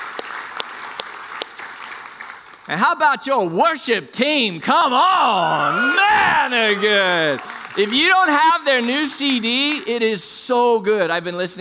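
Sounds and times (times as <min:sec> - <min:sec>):
round of applause: 0:00.0 - 0:02.9, 0:05.0 - 0:10.3
speech: 0:02.7 - 0:11.5.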